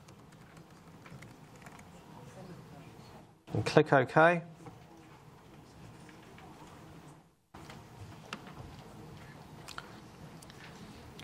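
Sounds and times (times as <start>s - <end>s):
typing a password on a computer keyboard: 0.0s - 1.9s
speech: 3.5s - 4.5s.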